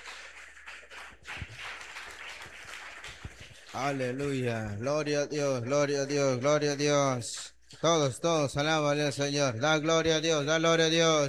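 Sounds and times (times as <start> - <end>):
audience applauding: 0.0 - 4.8
speech: 3.7 - 11.2.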